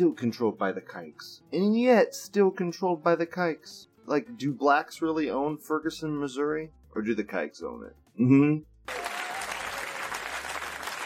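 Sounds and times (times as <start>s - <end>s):
speech: 0.0s - 9.1s
crowd applauding: 8.9s - 11.0s.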